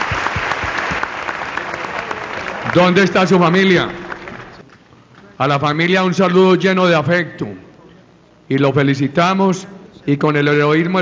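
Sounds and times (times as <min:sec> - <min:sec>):
community of Ocaña applauding: 0:00.0 - 0:04.6
speech: 0:02.8 - 0:04.0, 0:05.4 - 0:07.6, 0:08.5 - 0:11.0.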